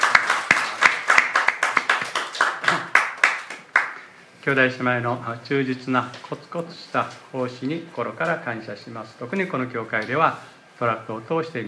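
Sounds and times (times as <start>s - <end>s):
audience clapping in welcome: 0.0s - 4.1s
speech: 4.4s - 11.6s.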